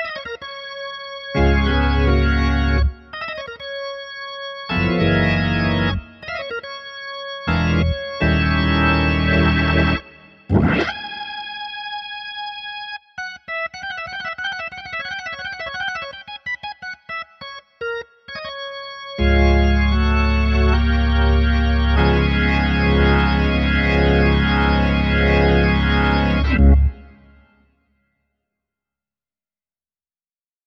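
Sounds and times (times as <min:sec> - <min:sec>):
gospel music: 0:00.1 - 0:03.2, 0:04.7 - 0:06.4, 0:07.3 - 0:11.8, 0:18.8 - 0:27.4.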